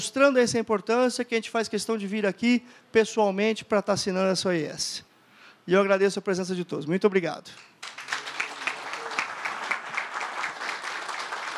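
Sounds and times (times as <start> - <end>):
speech: 0.0 - 8.0
crowd applauding: 7.8 - 11.5.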